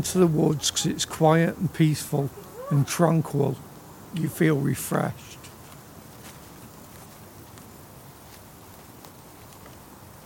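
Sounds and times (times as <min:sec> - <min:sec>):
speech: 0:00.0 - 0:05.4
steady hiss of quiet outdoor background: 0:00.0 - 0:10.2
footsteps crunching on an uneven woodland path: 0:05.4 - 0:10.2.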